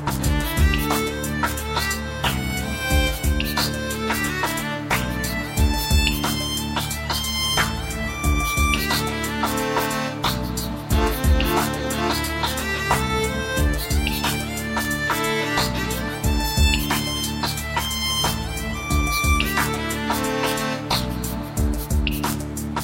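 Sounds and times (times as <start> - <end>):
fiddle playing: 0.2 - 22.6.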